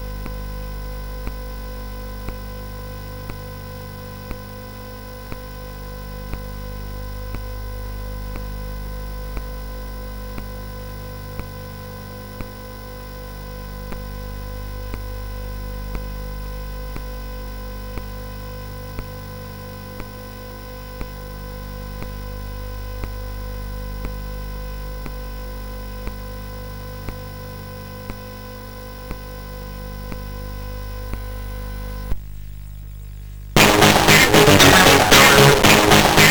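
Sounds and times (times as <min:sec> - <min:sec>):
pop music on SID CSG8580R5 chip: 0:33.6 - 0:36.2.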